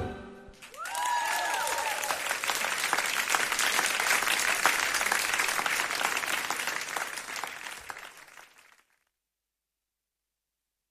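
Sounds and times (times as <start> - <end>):
audience applause: 0.6 - 8.9.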